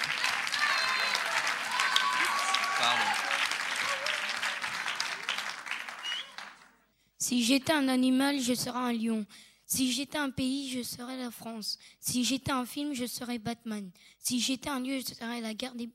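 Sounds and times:
audience applause: 0:00.0 - 0:06.8
speech: 0:07.3 - 0:15.9.

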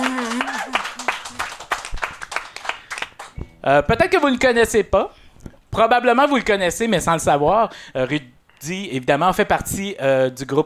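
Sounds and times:
applause: 0:00.0 - 0:03.4
speech: 0:03.6 - 0:05.2, 0:05.8 - 0:10.6.

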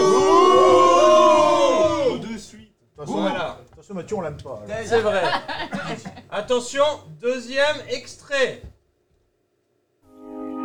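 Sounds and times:
live show audience booing: 0:00.0 - 0:02.5, 0:03.1 - 0:03.6
speech: 0:04.0 - 0:08.7
laughter: 0:04.6 - 0:06.6.

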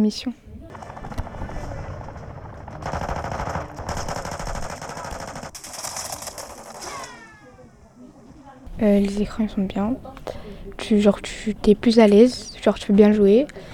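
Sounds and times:
speech: 0:00.0 - 0:00.4, 0:08.8 - 0:13.7
video game machine-gun fire: 0:00.7 - 0:07.4.

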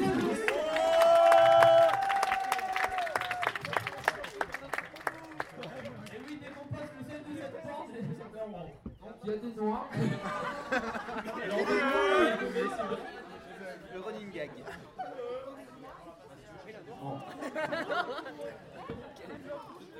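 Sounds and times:
audience clapping: 0:00.0 - 0:06.7
crowd chatter: 0:00.0 - 0:19.9
person whooping: 0:00.4 - 0:03.2
laughter: 0:09.8 - 0:15.7, 0:16.9 - 0:18.9.

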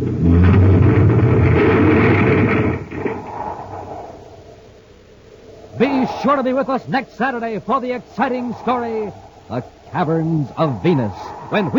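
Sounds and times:
tunnel car crashing into debris: 0:00.1 - 0:04.2
speech: 0:06.2 - 0:11.7.

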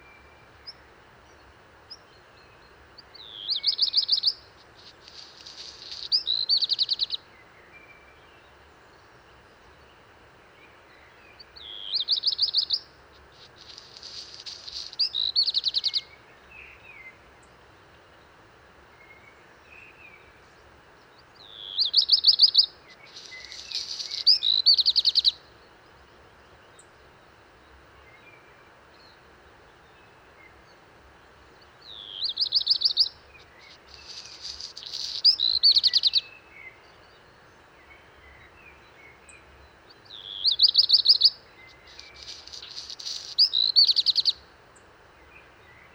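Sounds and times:
black redstart singing: 0:03.1 - 0:07.2, 0:11.6 - 0:16.0, 0:21.4 - 0:25.4, 0:31.8 - 0:36.4, 0:38.2 - 0:44.4.

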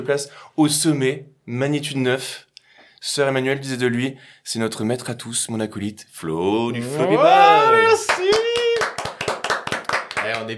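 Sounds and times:
speech: 0:00.0 - 0:08.1, 0:10.4 - 0:10.5
hand clapping by a few people: 0:07.5 - 0:10.5.

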